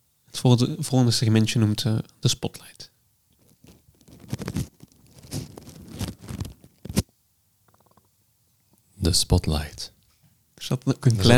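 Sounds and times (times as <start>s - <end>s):
speech: 0.4s - 2.9s, 9.1s - 10.0s, 10.7s - 11.3s
rose rubbed against a microphone: 3.4s - 7.0s.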